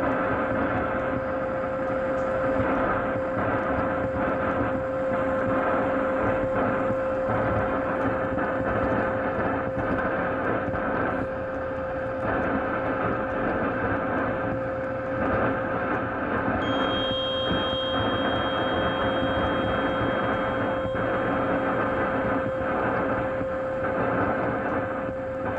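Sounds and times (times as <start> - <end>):
constant mid-pitched whine: 0.0 - 25.5
radio frequency interference static on an AM receiver at 1620AM: 0.0 - 25.5
thin high tones: 16.6 - 23.3.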